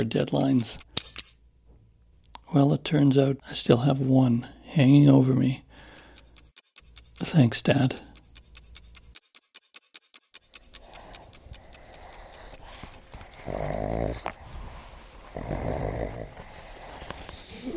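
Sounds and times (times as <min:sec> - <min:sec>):
speech: 0:00.0 - 0:01.2, 0:02.5 - 0:05.6, 0:07.2 - 0:08.1
pugs snorting and snuffling as they play: 0:10.6 - 0:17.7.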